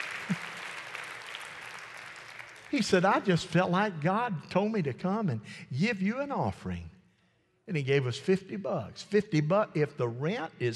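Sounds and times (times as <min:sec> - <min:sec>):
audience hand clapping: 0:00.0 - 0:03.3
speech: 0:02.7 - 0:06.9, 0:07.7 - 0:10.7.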